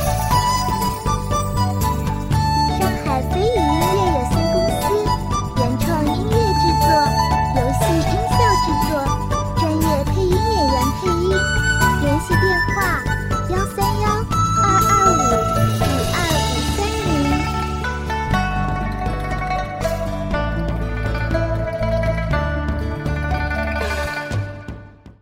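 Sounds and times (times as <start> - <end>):
relaxed cheerful Chinese-style dramatic music: 0.0 - 25.2.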